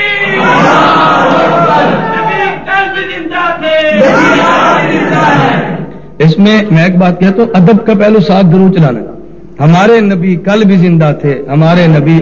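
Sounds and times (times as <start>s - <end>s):
rally crowd chanting Allahu Akbar: 0.2s - 2.6s, 3.9s - 5.9s
speech: 6.2s - 12.2s.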